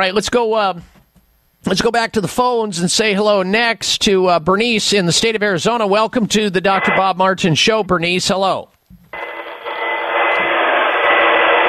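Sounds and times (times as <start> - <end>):
speech: 0.0 - 1.0, 1.6 - 8.7
vacuum cleaner vacuuming a front room: 9.6 - 11.6.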